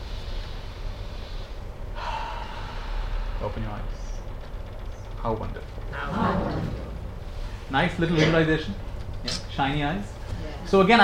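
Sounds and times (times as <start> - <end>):
deep breath during a guided meditation: 0.0 - 3.9
speech: 3.4 - 4.3, 5.2 - 6.8, 7.7 - 11.0.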